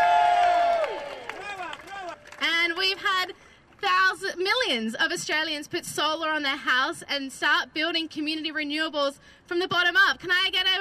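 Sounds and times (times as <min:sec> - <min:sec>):
audience clapping and cheering: 0:00.0 - 0:03.0
speech: 0:04.4 - 0:10.7.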